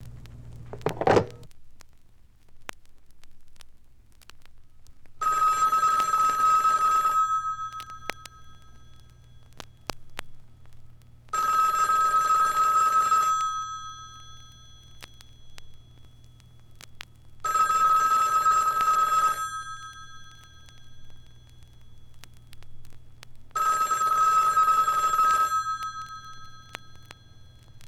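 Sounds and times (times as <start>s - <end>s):
phone ringing: 0.7s - 1.5s, 5.2s - 10.2s, 11.3s - 16.8s, 17.4s - 22.5s, 23.5s - 27.8s.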